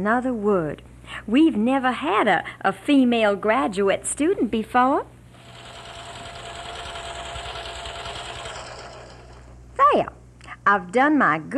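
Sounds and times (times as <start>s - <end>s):
speech: 0.0s - 5.1s, 9.9s - 11.5s
sewing machine whirring: 5.3s - 9.7s.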